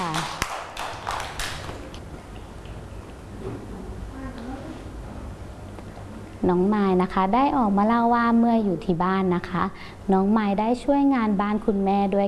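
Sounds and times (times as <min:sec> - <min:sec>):
children clapping: 0:00.0 - 0:02.0
speech: 0:06.4 - 0:12.2.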